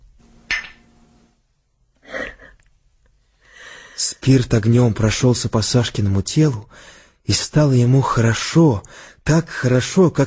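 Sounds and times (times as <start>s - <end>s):
glasses clinking in a toast: 0.4s - 1.0s
speech: 4.2s - 10.2s.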